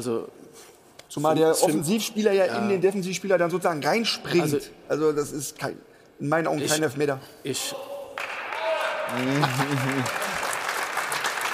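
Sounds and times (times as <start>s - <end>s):
speech: 0.0s - 8.0s, 9.1s - 10.2s
applause in the background: 8.2s - 11.5s.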